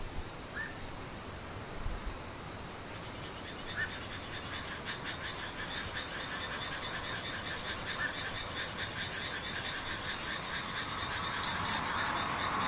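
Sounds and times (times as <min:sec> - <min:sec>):
soft steady hiss: 0:00.0 - 0:11.8
insect pulsing trill: 0:02.9 - 0:12.6
sharp click: 0:11.4 - 0:11.8
high chirps: 0:11.4 - 0:11.9.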